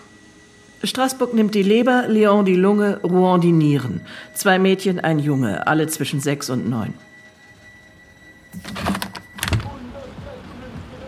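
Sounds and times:
speech: 0:00.8 - 0:07.1
window being opened in an office: 0:08.6 - 0:09.8.

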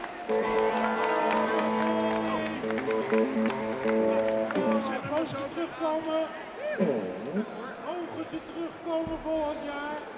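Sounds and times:
audience applause: 0:00.0 - 0:06.3
speech: 0:05.8 - 0:10.1.

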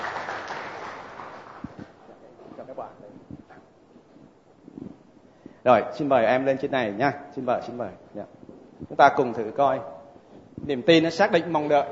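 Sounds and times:
audience applause: 0:00.0 - 0:01.8
speech: 0:05.6 - 0:10.0, 0:10.6 - 0:11.8.

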